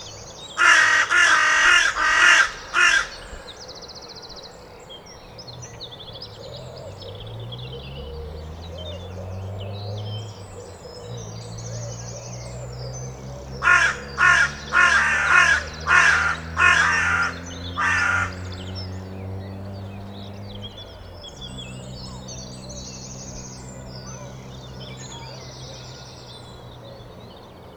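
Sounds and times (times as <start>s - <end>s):
carrion crow cawing: 0.6s - 3.6s, 13.6s - 18.7s.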